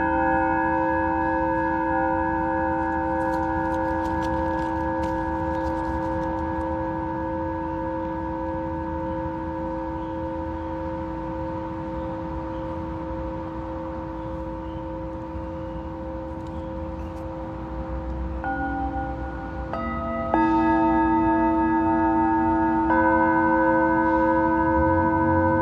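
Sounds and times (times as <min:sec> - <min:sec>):
Tibetan singing bowl ringing: 0:00.0 - 0:16.8, 0:18.3 - 0:25.6.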